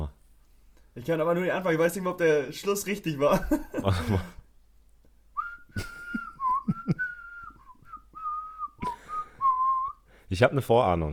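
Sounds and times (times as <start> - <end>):
speech: 1.0 - 4.4, 10.3 - 11.1
whistled Christmas carol melody: 5.4 - 10.0.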